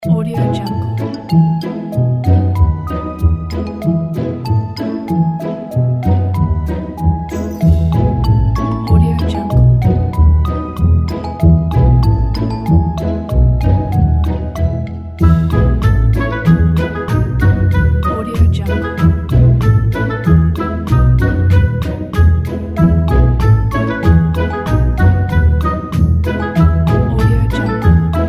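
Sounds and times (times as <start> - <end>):
fun family game music: 0.0 - 28.2.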